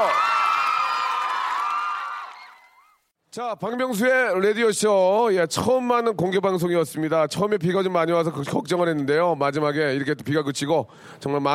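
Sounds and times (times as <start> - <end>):
audience applause and cheering: 0.0 - 3.1
speech: 3.4 - 11.5.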